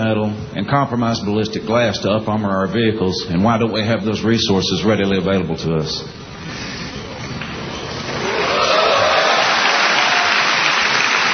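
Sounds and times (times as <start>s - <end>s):
speech: 0.0s - 6.7s
National Guard and Reserve soldiers cheering and applauding at an assembly: 7.2s - 11.3s.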